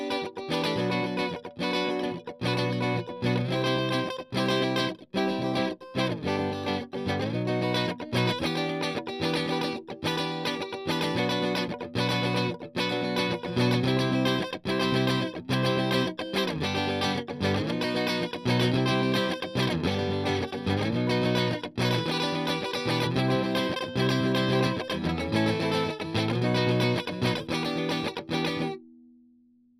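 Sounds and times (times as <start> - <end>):
strings strummed: 0.1 - 28.8.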